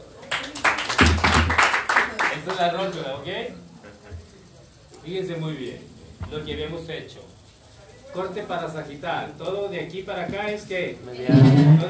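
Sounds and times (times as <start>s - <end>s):
group applause: 0.0s - 3.1s
speech: 2.5s - 3.7s, 5.0s - 7.4s, 8.1s - 11.8s.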